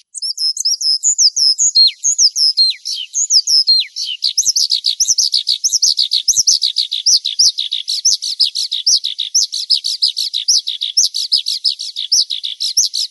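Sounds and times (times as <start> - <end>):
Horsfield's bush lark chirping and whistling: 0.0 - 13.0.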